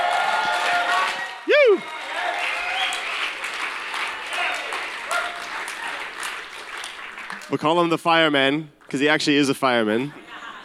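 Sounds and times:
congregation applause at a worship gathering: 0.0s - 8.3s
speech: 7.5s - 10.2s.

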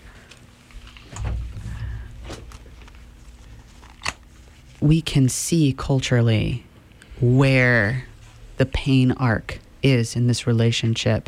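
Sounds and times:
door closing: 1.0s - 4.2s
speech: 4.8s - 11.2s.

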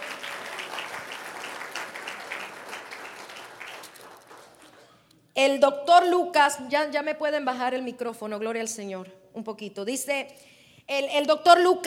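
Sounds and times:
audience applause: 0.0s - 4.8s
speech: 5.4s - 11.8s.

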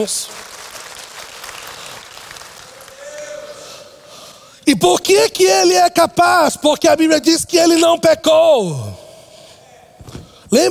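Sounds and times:
speech: 0.0s - 0.5s, 4.7s - 9.0s
audience applause: 0.0s - 3.8s
faint voice or cheer: 2.7s - 4.1s.

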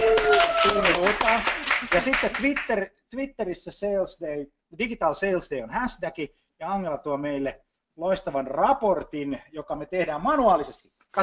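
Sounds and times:
voice or cheering: 0.0s - 1.4s
audience applause: 0.0s - 2.6s
speech: 0.6s - 11.2s.

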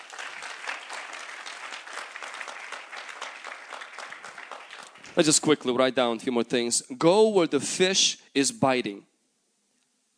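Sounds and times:
audience applause at a church service: 0.0s - 5.5s
speech: 5.2s - 9.1s.

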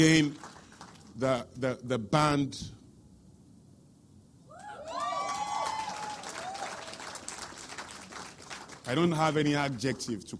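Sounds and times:
speech: 0.0s - 0.4s, 1.2s - 2.8s, 8.9s - 10.3s
audience clapping: 0.0s - 1.2s, 4.9s - 10.3s.

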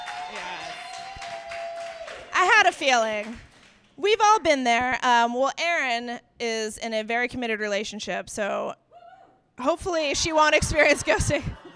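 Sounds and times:
audience applause: 0.0s - 3.8s
speech: 2.6s - 8.8s, 9.6s - 11.6s.

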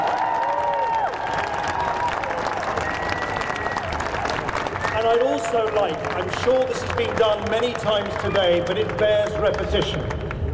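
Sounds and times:
crowd applauding: 0.0s - 10.5s
whistles: 2.8s - 3.9s
speech: 5.5s - 10.5s.

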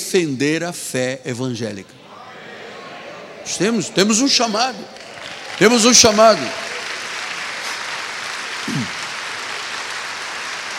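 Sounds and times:
speech: 0.1s - 2.0s, 3.5s - 5.0s, 5.6s - 6.7s
audience applauding: 4.1s - 10.7s.

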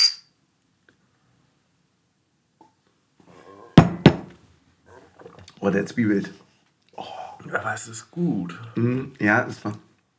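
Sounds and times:
glasses clinking in a toast: 3.8s - 4.4s
speech: 5.6s - 6.5s, 7.5s - 9.9s.

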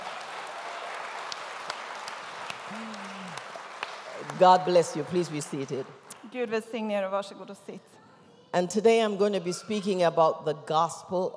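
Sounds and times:
audience applause: 0.0s - 5.9s
speech: 2.7s - 3.0s, 4.4s - 11.3s.

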